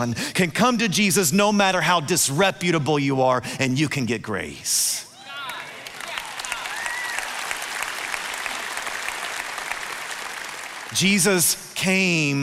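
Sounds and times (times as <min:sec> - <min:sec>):
speech: 0:00.0 - 0:05.0, 0:10.9 - 0:12.4
audience clapping: 0:05.4 - 0:11.8.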